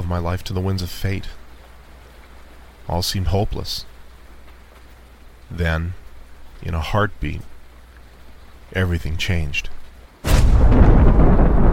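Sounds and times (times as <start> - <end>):
speech: 0.1 - 1.4, 2.9 - 3.9, 5.5 - 6.0, 6.6 - 7.5, 8.7 - 10.4
door bursting open with a crash: 10.2 - 11.7.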